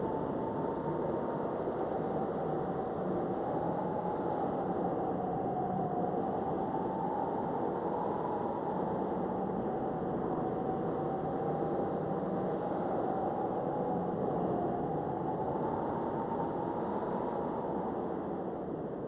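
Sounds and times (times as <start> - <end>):
big wind in a dungeon: 0.0 - 19.0.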